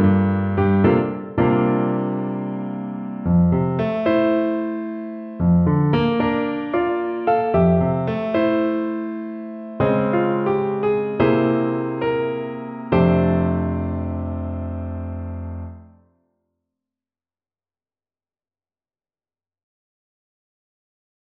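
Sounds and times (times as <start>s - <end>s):
piano: 0.0s - 16.1s.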